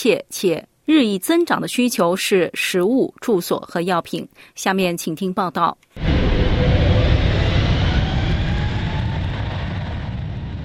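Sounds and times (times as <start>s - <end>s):
speech: 0.0s - 6.8s
airplane in flight from Melbourne carrying Australian humanitarian aid: 6.0s - 10.6s.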